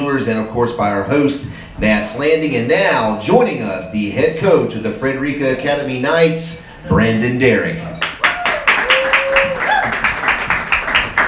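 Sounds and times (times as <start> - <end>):
speech: 0.2 - 8.0
people cheering: 8.0 - 11.2.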